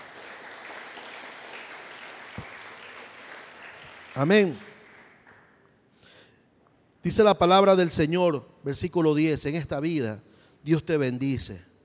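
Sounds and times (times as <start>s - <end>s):
church congregation applauding during a service: 0.0s - 5.8s
speech: 4.2s - 4.6s, 7.0s - 11.7s.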